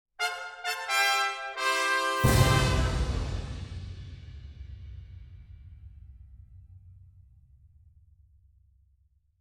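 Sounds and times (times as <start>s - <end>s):
fanfare: 0.2s - 3.9s.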